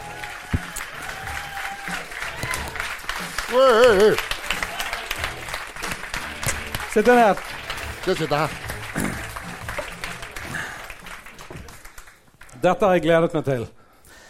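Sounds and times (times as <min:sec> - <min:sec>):
studio audience applause: 0:00.0 - 0:13.0
speech: 0:03.5 - 0:04.3, 0:07.0 - 0:09.1, 0:12.6 - 0:13.8.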